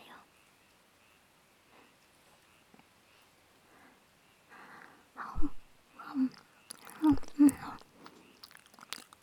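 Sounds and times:
person breathing softly while lying beside the listener: 3.1s - 9.1s.

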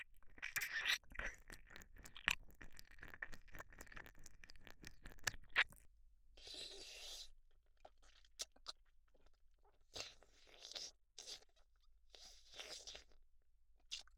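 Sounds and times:
ear licking sounds loop: 0.2s - 5.8s.

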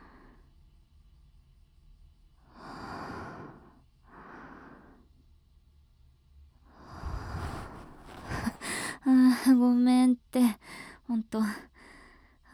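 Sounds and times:
heavy out-of-breath panting: 7.0s - 9.1s
speech: 9.4s - 11.7s.

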